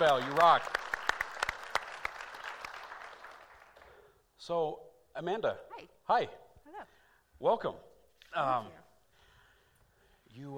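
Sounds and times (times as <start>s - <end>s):
speech: 0.0s - 0.9s, 4.5s - 8.8s, 10.4s - 10.5s
church congregation applause for the teen helpers: 0.0s - 4.0s.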